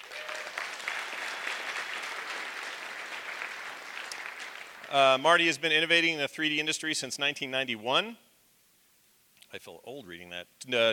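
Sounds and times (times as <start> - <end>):
audience applause: 0.0 - 5.2
speech: 4.9 - 8.2, 9.5 - 10.9.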